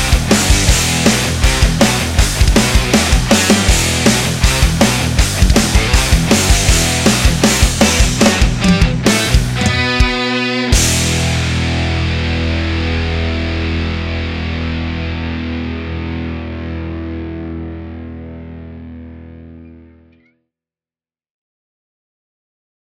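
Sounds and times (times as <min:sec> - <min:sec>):
metal power drum kit playing: 0:00.0 - 0:16.8.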